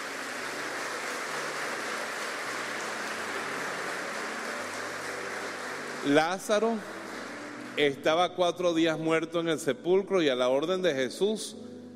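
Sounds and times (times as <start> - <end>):
audience applause: 0.0 - 8.2
speech: 6.0 - 7.0, 7.8 - 11.7.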